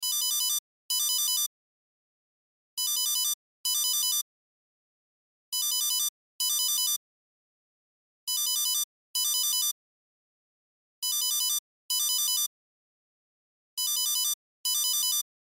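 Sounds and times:
cell phone ringtone: 0:00.0 - 0:01.5, 0:02.8 - 0:04.2, 0:05.6 - 0:07.0, 0:08.3 - 0:09.8, 0:11.0 - 0:12.5, 0:13.8 - 0:15.2.

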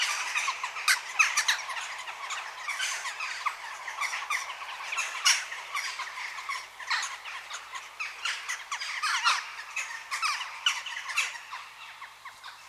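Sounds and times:
western jackdaw adults and fledgelings begging calls in a quarry: 0:00.0 - 0:12.6.

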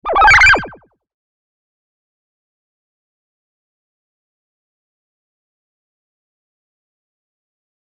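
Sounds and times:
twisted theremin: 0:00.0 - 0:00.8.

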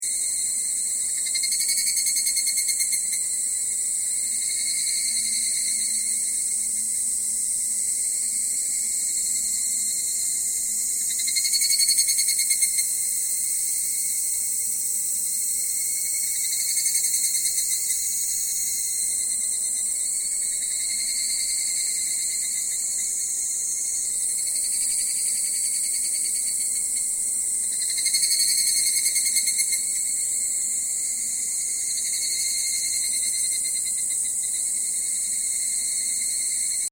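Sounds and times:
Japanese cicadas in summer at Takao: 0:00.0 - 0:36.8.

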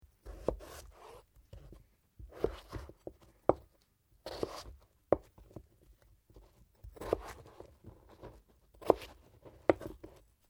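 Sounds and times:
potato slicing: 0:00.2 - 0:01.2, 0:04.2 - 0:05.4, 0:06.8 - 0:10.2.

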